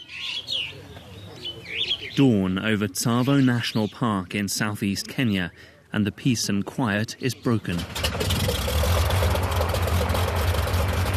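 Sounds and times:
speech: 2.2s - 8.6s
small propeller plane engine running: 7.8s - 11.1s.

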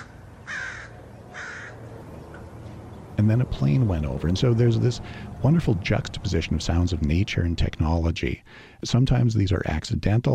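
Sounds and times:
crows cawing: 0.0s - 1.9s
speech: 3.2s - 10.3s.

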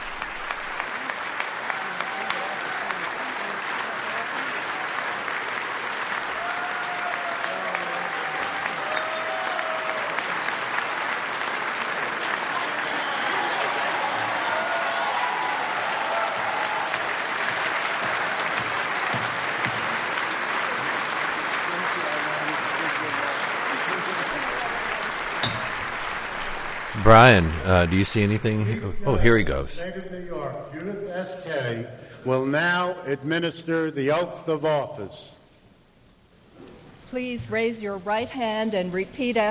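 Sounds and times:
audience applause at a swearing-in ceremony: 0.0s - 30.5s
voices murmuring: 26.8s - 29.8s
speech: 27.1s - 35.4s, 37.1s - 39.4s.

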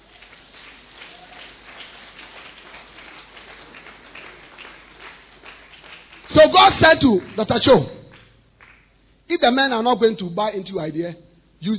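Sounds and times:
audience clapping: 0.0s - 9.0s
speech: 6.3s - 8.0s, 9.3s - 11.7s.

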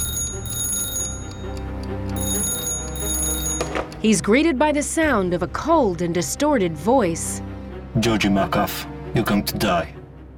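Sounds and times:
telephone bell ringing: 0.0s - 4.0s
speech: 4.0s - 10.0s.

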